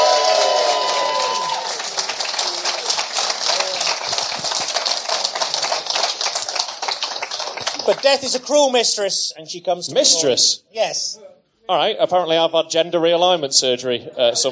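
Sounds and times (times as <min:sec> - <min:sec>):
voices whooping: 0:00.0 - 0:03.9
crowd applause: 0:00.0 - 0:08.4
speech: 0:07.9 - 0:14.5.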